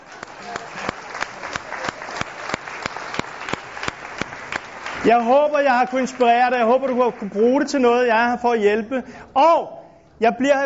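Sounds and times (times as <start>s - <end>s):
audience applause at the end of a talk: 0.0s - 8.1s
sharp single claps: 0.1s - 5.0s
speech: 5.0s - 10.6s.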